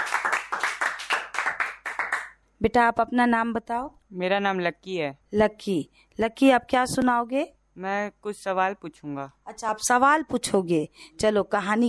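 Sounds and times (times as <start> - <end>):
group of children clapping: 0.0 - 2.4
speech: 2.6 - 11.8.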